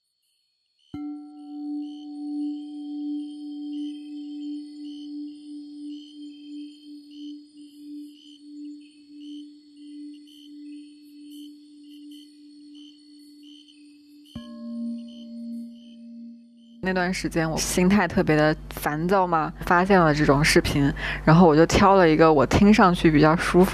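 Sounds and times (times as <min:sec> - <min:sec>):
Tibetan singing bowl struck, resonant hum: 0:00.9 - 0:19.4
speech: 0:16.9 - 0:23.7.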